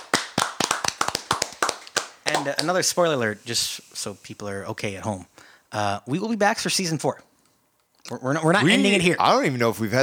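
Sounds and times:
sharp crisp hand claps: 0:00.0 - 0:02.8
speech: 0:02.3 - 0:07.3, 0:08.1 - 0:10.0.

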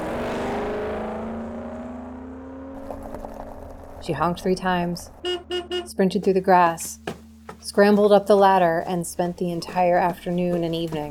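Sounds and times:
car engine revving and pulling away: 0:00.0 - 0:05.9
speech: 0:04.0 - 0:07.0, 0:07.6 - 0:11.1.

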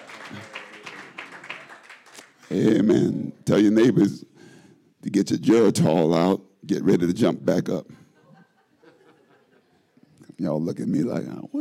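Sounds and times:
church congregation clapping hands: 0:00.0 - 0:02.9
speech: 0:02.5 - 0:04.3, 0:05.1 - 0:08.0, 0:10.4 - 0:11.6
laughter: 0:07.9 - 0:10.1.

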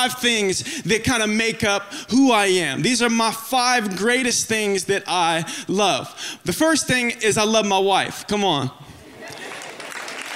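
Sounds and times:
speech: 0:00.0 - 0:08.8
audience clapping: 0:09.2 - 0:10.3.

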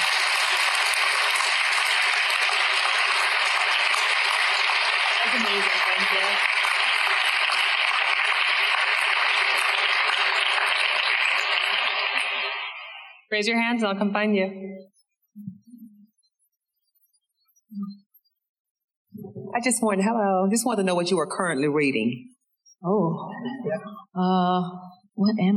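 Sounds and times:
audience applause: 0:00.0 - 0:13.2
speech: 0:13.3 - 0:15.8, 0:17.7 - 0:18.0, 0:19.2 - 0:25.5.

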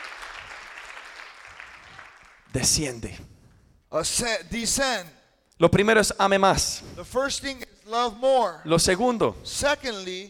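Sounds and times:
audience applause: 0:00.0 - 0:02.5
speech: 0:02.5 - 0:03.3, 0:03.9 - 0:10.2.

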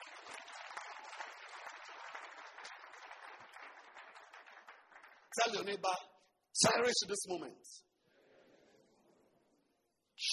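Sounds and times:
audience clapping: 0:00.0 - 0:06.0
speech: 0:05.4 - 0:07.9.

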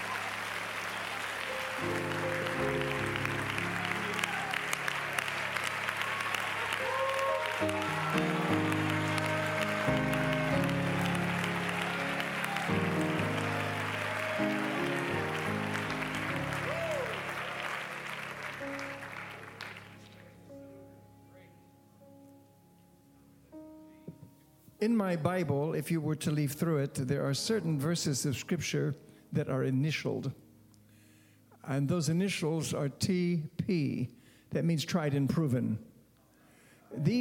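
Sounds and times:
crowd clapping: 0:00.0 - 0:20.4
sustained keyboard chords: 0:00.0 - 0:25.4
speech: 0:01.8 - 0:02.2, 0:24.8 - 0:30.4, 0:31.7 - 0:35.9, 0:37.0 - 0:37.1.

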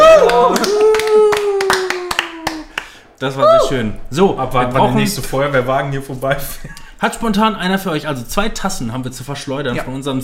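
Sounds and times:
hand clapping applause: 0:00.0 - 0:03.1
speech: 0:03.2 - 0:10.2.

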